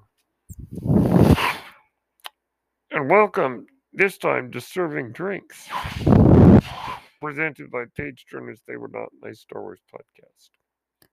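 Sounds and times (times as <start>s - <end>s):
medical ventilator cycling: 0.6s - 1.7s, 5.7s - 7.0s
speech: 3.0s - 10.6s.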